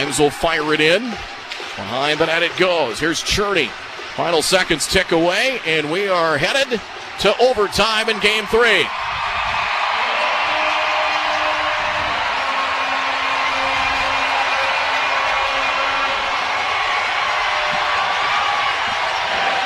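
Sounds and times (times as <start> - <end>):
speech: 0.0 - 9.0
hockey arena crowd roaring and cheering: 0.0 - 19.6.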